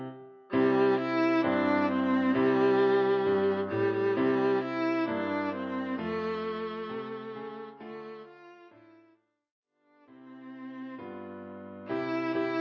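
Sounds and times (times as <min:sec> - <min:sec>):
viola: 0:00.5 - 0:08.9, 0:11.9 - 0:12.6.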